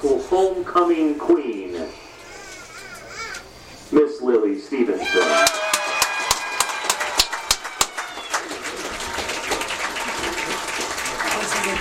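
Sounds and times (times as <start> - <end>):
speech: 0.0 - 2.0
shrill cheers: 5.0 - 10.3
crowd applause for homecoming queen: 5.1 - 11.7.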